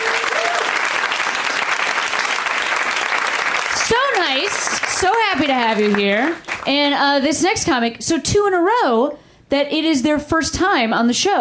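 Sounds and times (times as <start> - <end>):
audience applause: 0.0 - 6.7
speech: 4.5 - 11.3.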